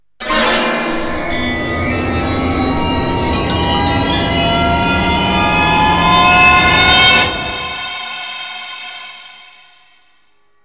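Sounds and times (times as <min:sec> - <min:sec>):
Japanese ghost-themed jingles: 0:01.0 - 0:08.4.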